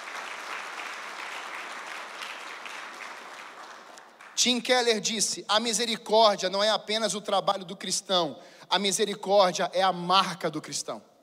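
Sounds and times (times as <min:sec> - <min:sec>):
audience applauding: 0:00.0 - 0:04.5
speech: 0:04.4 - 0:11.1.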